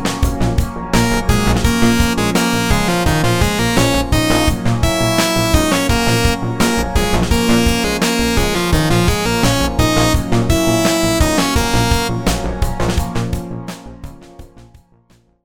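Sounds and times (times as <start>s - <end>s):
simple dotted eighth-note rhythm: 0.1s - 13.5s.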